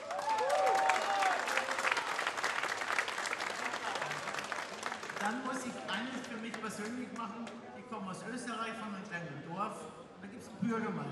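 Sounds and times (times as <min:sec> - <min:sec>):
whistles and cheers: 0:00.0 - 0:02.1
crowd clapping: 0:00.0 - 0:07.6
speech: 0:05.6 - 0:11.0.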